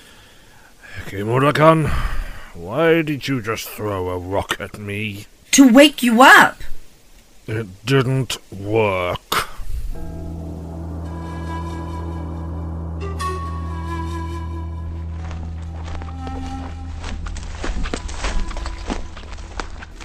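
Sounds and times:
speech: 1.1 - 6.7, 7.5 - 9.2
low droning tone: 9.9 - 20.0
footsteps walking audio drama sound effect: 14.7 - 20.0.

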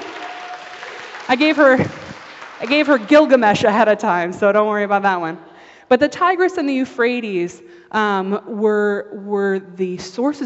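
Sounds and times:
audience applause: 0.0 - 3.4
speech: 1.3 - 2.0, 2.6 - 10.4.

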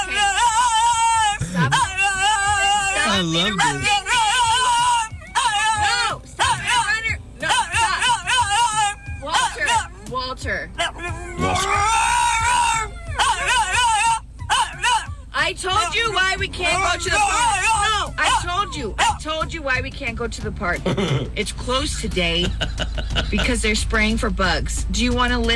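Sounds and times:
French Bulldog throwing a whining temper tantrum: 0.0 - 10.0, 10.8 - 16.0, 16.7 - 19.2
laughter: 0.4 - 6.9, 11.1 - 15.0, 20.8 - 23.8
speech: 3.2 - 4.0, 19.2 - 25.5.

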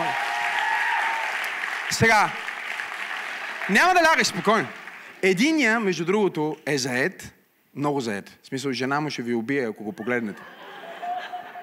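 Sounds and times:
audience applause: 0.0 - 5.3
speech: 1.9 - 2.4, 3.7 - 10.6
laughter: 9.9 - 11.6.

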